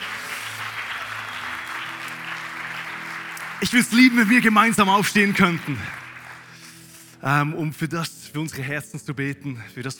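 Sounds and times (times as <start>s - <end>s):
audience clapping: 0.0s - 7.3s
speech: 3.6s - 6.0s, 7.2s - 9.9s.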